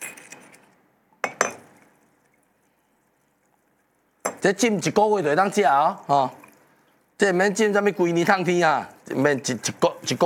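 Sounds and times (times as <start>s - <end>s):
glass jar of sorghum liquor clinking: 1.2s - 1.8s, 4.2s - 4.4s
speech: 4.4s - 6.4s, 7.2s - 10.2s.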